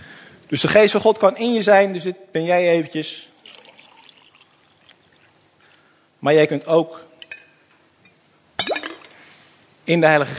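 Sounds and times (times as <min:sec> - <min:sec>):
speech: 0:00.5 - 0:03.3, 0:06.2 - 0:07.1, 0:09.9 - 0:10.3
water pouring from a small jug: 0:03.4 - 0:05.5.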